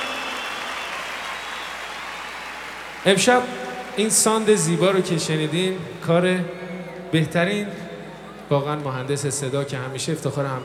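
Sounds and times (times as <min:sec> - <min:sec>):
audience applause for a violinist and his band: 0:00.0 - 0:05.5
speech: 0:03.0 - 0:07.8, 0:08.5 - 0:10.6.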